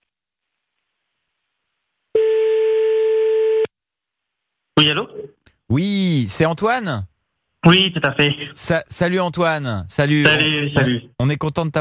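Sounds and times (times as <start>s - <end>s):
telephone ringback tone of an outgoing call: 2.2s - 3.7s
speech: 4.8s - 11.7s.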